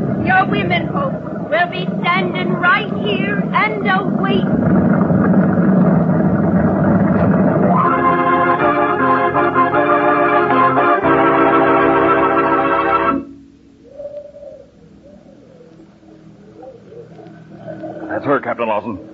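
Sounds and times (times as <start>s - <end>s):
motor launch engines roaring: 0.0s - 13.4s
faint hum: 0.0s - 19.1s
speech: 0.3s - 5.1s, 18.6s - 19.1s.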